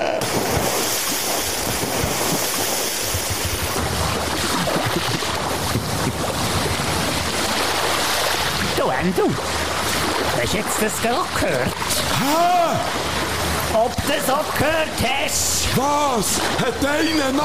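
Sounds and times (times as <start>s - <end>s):
cannonball jump splashing into water: 0.2s - 13.8s
speech: 10.5s - 13.1s, 13.8s - 17.4s.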